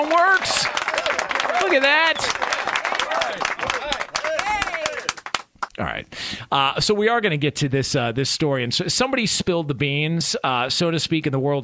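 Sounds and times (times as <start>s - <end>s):
speech: 0.0s - 0.8s, 1.6s - 2.4s, 5.8s - 11.6s
applause: 0.0s - 5.7s.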